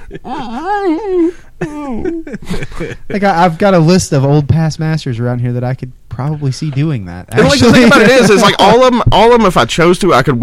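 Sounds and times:
laughter: 0:00.0 - 0:03.4, 0:07.4 - 0:08.9
speech: 0:00.1 - 0:10.4
person imitating a toddler trying not to cry: 0:00.2 - 0:02.2.

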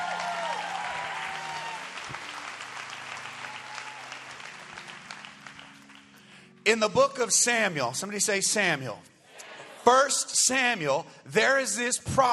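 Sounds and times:
audience applause: 0:00.0 - 0:06.2
speech: 0:06.7 - 0:09.1, 0:09.8 - 0:12.3.

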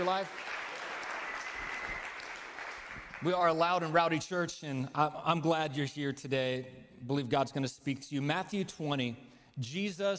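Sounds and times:
audience clapping: 0:00.0 - 0:03.9
speech: 0:00.1 - 0:00.5, 0:03.2 - 0:10.1.

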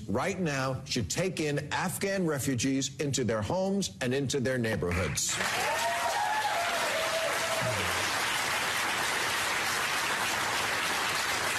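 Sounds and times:
speech: 0:00.1 - 0:06.0
audience clapping: 0:04.9 - 0:11.5.

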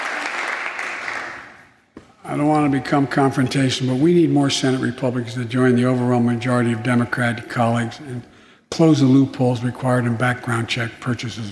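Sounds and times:
large crowd applauding in a legislative chamber: 0:00.0 - 0:01.6
speech: 0:02.3 - 0:11.5.

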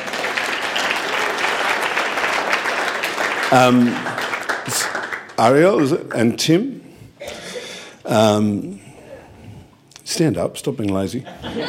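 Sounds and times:
crowd clapping: 0:00.0 - 0:06.5
speech: 0:03.5 - 0:04.0, 0:04.7 - 0:07.4, 0:08.1 - 0:08.8, 0:10.2 - 0:11.6
laughter: 0:11.2 - 0:11.6.

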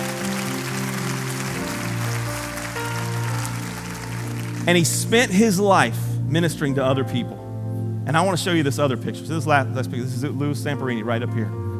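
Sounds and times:
audience clapping hands: 0:00.0 - 0:05.4
speech: 0:04.7 - 0:07.4, 0:08.1 - 0:11.6.

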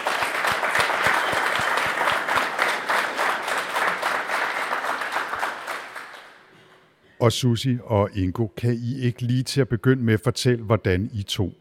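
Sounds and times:
audience applause welcoming two guests at a talk event: 0:00.0 - 0:06.5
speech: 0:07.2 - 0:11.5.

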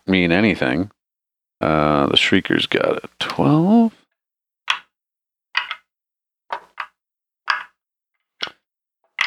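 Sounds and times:
speech: 0:00.1 - 0:01.0, 0:01.6 - 0:04.0
dice being rolled: 0:04.7 - 0:04.9, 0:05.5 - 0:05.9, 0:06.5 - 0:09.2.

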